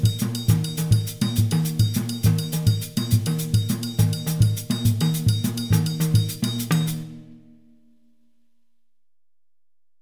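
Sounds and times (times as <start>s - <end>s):
Adowa highlife rhythm on drumset: 0.0s - 7.1s.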